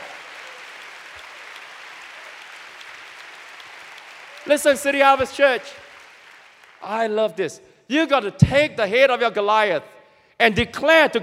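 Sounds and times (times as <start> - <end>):
audience clapping: 0.0 - 7.4
speech: 4.4 - 5.8, 6.8 - 11.2.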